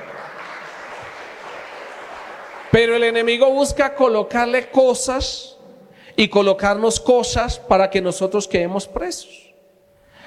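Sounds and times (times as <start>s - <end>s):
audience applauding: 0.0s - 3.2s
speech: 2.8s - 5.6s, 6.2s - 9.5s.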